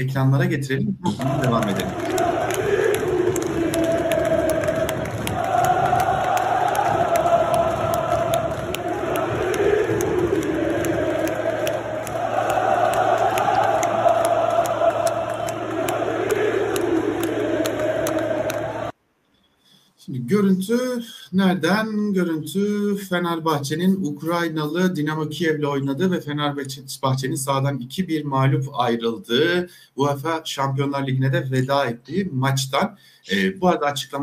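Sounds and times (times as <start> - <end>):
speech: 0.0 - 2.8, 21.4 - 34.2
large crowd of football fans chanting in unison: 1.1 - 19.0.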